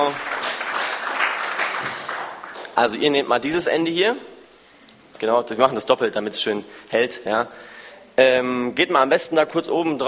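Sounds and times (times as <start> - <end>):
audience applause for volunteers: 0.0 - 2.8
speech: 2.8 - 4.3, 5.2 - 10.0.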